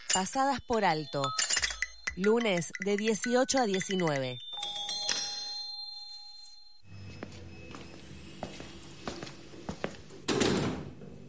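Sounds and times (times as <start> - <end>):
speech: 0.1 - 1.5, 2.2 - 4.4
electronic doorbell chime: 0.6 - 8.5.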